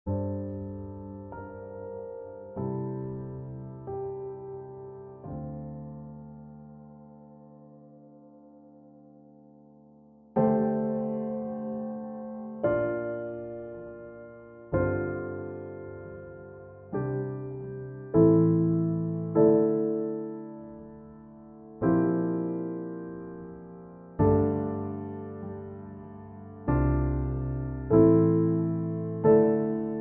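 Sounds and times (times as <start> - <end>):
piano improvisation: 0.1 - 29.9.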